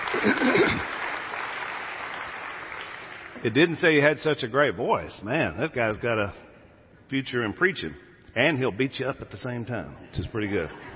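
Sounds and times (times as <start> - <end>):
audience applause: 0.0 - 3.4
speech: 0.2 - 0.9, 3.4 - 6.5, 7.1 - 10.9.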